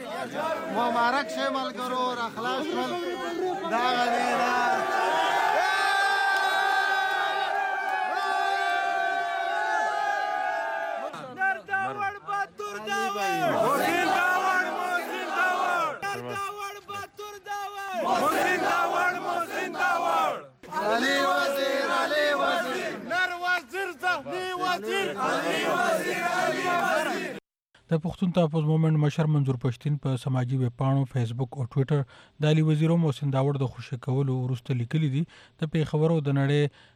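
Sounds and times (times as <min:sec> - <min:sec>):
Pashtun Tahafuz Movement supporters chanting welcome slogans outside Bacha Khan airport: 0:00.0 - 0:11.7, 0:13.0 - 0:16.3, 0:17.9 - 0:27.4
crowd shouting: 0:00.0 - 0:27.4
speech: 0:00.2 - 0:05.3, 0:24.7 - 0:36.9.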